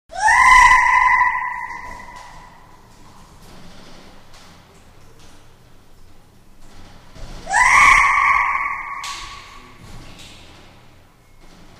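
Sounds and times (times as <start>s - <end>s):
chimpanzee screaming while climbing a cage in a large space: 0.1s - 2.7s, 7.4s - 9.8s.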